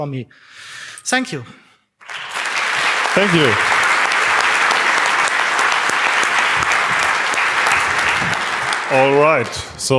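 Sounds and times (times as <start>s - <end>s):
speech: 0.0s - 1.6s, 3.1s - 3.8s, 8.9s - 9.9s
audience applause after a talk: 2.0s - 9.9s.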